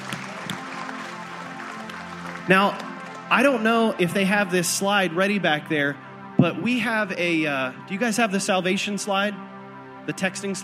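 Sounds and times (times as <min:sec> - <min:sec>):
audience clapping: 0:00.0 - 0:03.7
speech: 0:02.5 - 0:09.5, 0:10.1 - 0:10.6.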